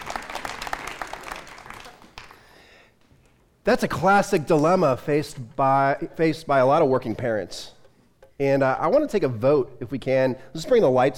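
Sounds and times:
audience applause: 0.0s - 2.5s
speech: 3.6s - 7.8s, 8.4s - 11.1s.

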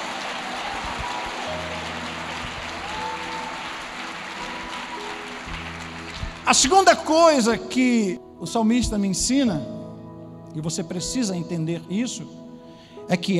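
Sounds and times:
audience applause: 0.0s - 7.1s
speech: 6.5s - 9.8s, 10.6s - 12.4s, 13.1s - 13.3s.

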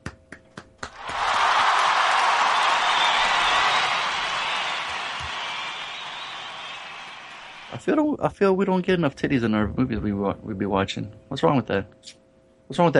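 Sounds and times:
applause: 0.1s - 7.8s
speech: 7.9s - 12.9s.

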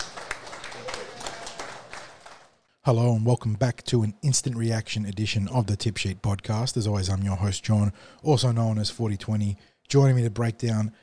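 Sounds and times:
round of applause: 0.0s - 2.7s
speech: 2.8s - 11.0s.

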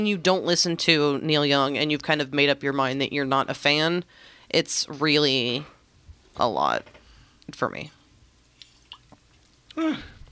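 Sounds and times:
speech: 0.0s - 5.7s, 6.4s - 8.0s, 9.8s - 10.1s
yawn: 9.7s - 10.2s.

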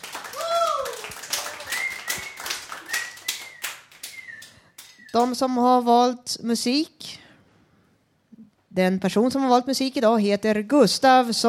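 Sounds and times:
audience applause: 0.0s - 4.9s
speech: 5.2s - 7.0s, 8.8s - 11.4s.

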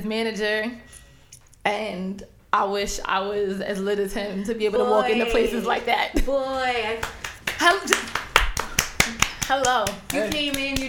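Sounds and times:
speech: 0.0s - 1.0s, 1.6s - 8.2s, 9.5s - 10.8s
hands clapping: 7.0s - 10.8s.

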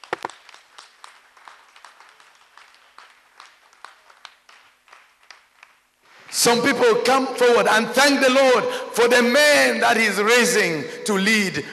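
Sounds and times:
audience clapping hands: 0.0s - 6.2s
speech: 6.4s - 11.7s.

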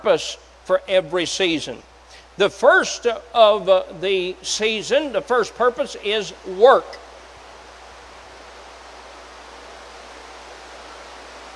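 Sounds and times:
speech: 0.0s - 7.0s
rain falling: 7.4s - 11.5s.

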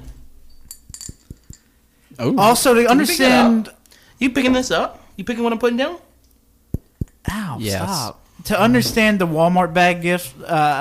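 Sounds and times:
thick glass candy jar clinking: 0.5s - 1.7s
speech: 2.2s - 6.1s, 7.6s - 10.7s.

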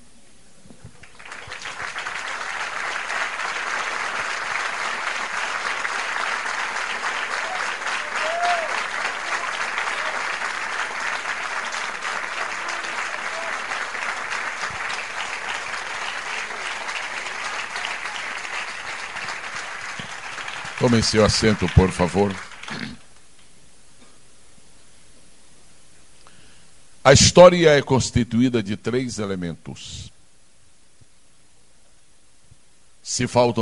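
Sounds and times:
applause: 1.0s - 23.5s
speech: 20.9s - 22.5s, 27.1s - 30.0s, 33.2s - 33.6s.

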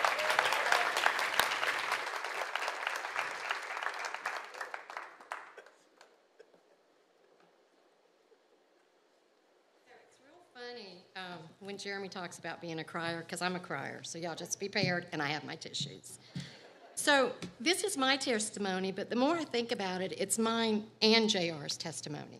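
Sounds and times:
church audience applause welcoming the first speaker: 0.0s - 6.2s
speech: 11.8s - 16.4s, 17.0s - 22.3s.

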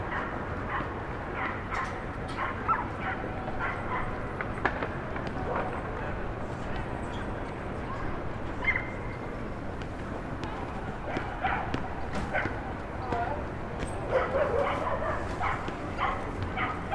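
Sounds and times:
dogs barking: 0.0s - 4.3s, 8.6s - 9.1s, 11.0s - 12.6s, 14.0s - 16.9s
city rumble over Starr Street, Brooklyn: 0.0s - 16.9s
faint voices: 0.0s - 16.9s.

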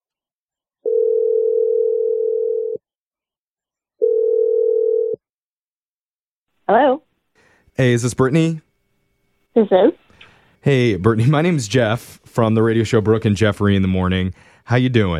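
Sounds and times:
telephone ringing tones: 0.8s - 2.8s, 4.0s - 5.2s
speech: 7.8s - 8.7s, 9.5s - 10.0s, 10.6s - 15.1s.

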